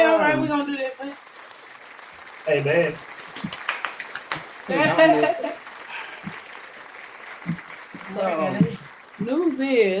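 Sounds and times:
round of applause sound effect: 0.0s - 9.9s
speech: 2.5s - 3.6s, 4.7s - 5.6s, 7.4s - 9.9s
laughter: 4.6s - 6.4s.

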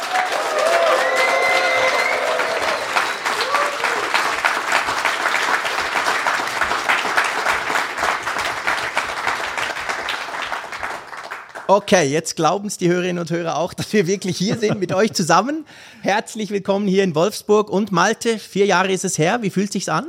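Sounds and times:
crowd cheering and whooping: 0.0s - 4.3s
live audience applauding: 0.0s - 11.9s
speech: 11.7s - 20.0s
laughter: 13.7s - 15.4s.

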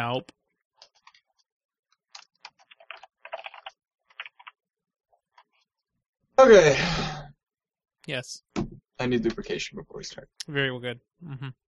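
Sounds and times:
speech: 0.0s - 0.4s, 6.4s - 7.2s, 8.1s - 11.6s
typing on a computer keyboard: 2.1s - 4.6s.

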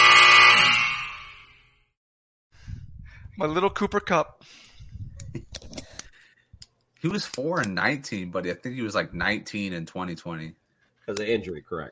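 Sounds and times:
loud harsh quiz buzzer: 0.0s - 1.8s
speech: 3.4s - 4.7s, 7.0s - 11.8s.

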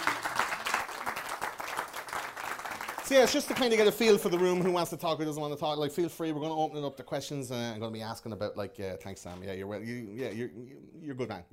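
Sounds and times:
audience round of applause: 0.0s - 4.7s
speech: 3.1s - 11.5s.

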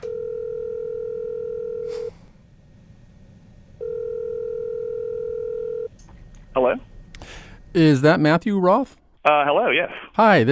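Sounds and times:
telephone dial tone: 0.0s - 1.9s, 3.8s - 5.9s
speech: 7.7s - 10.5s.

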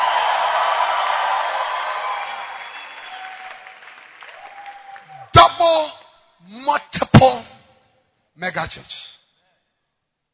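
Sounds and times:
audience clapping: 0.0s - 6.1s
speech: 8.4s - 9.1s.

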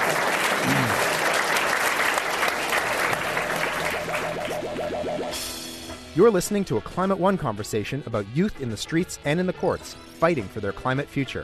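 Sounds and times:
audience applause: 0.0s - 5.4s
speech: 6.2s - 11.4s.

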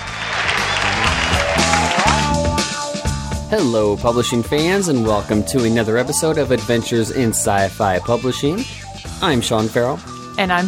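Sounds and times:
applause sound effect: 0.0s - 2.6s
crowd cheering sound effect: 0.0s - 2.8s
speech: 3.5s - 10.6s.

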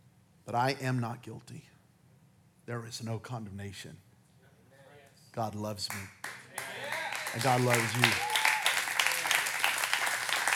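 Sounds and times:
speech: 0.5s - 1.7s, 2.7s - 4.1s, 5.3s - 8.3s
audience clapping hands: 5.9s - 10.5s.

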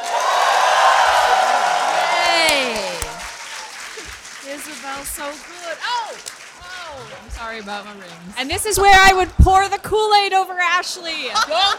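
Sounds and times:
live audience cheering: 0.0s - 7.3s
live audience clapping: 0.0s - 9.4s
speech: 5.0s - 11.7s.

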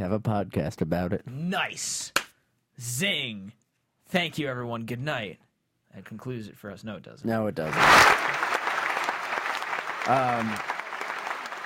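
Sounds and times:
speech: 0.0s - 2.2s, 2.8s - 8.2s, 10.1s - 10.7s
applause: 7.6s - 11.6s.

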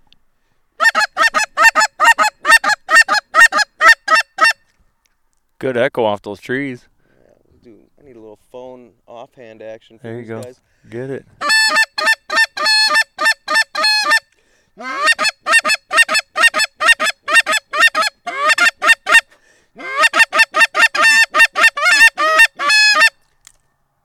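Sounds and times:
geese honking in a flock: 0.8s - 4.6s, 11.4s - 14.2s, 14.8s - 23.2s
speech: 5.6s - 6.9s, 9.6s - 11.8s.

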